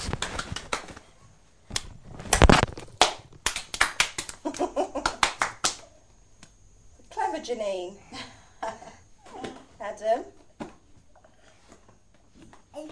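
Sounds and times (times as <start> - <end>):
hand clapping: 0.0 - 1.0, 1.8 - 6.5
speech: 7.4 - 8.3, 10.0 - 10.4.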